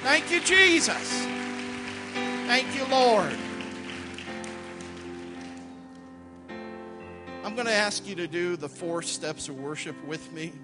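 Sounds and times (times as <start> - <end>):
speech: 0.0 - 1.5, 2.5 - 3.5, 7.5 - 10.6
audience hand clapping: 0.0 - 6.0.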